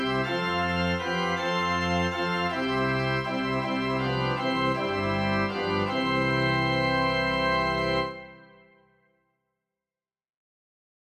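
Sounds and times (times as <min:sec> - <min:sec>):
organ: 0:00.0 - 0:08.8.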